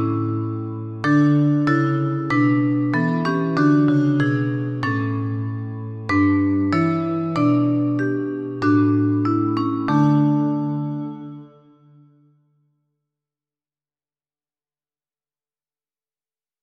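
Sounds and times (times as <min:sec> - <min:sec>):
vibraphone: 0:00.0 - 0:12.2
synthesizer: 0:00.0 - 0:12.4.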